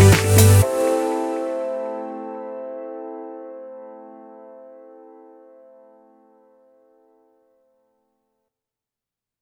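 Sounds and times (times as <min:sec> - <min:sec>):
upbeat fashion corporate music: 0:00.0 - 0:01.9.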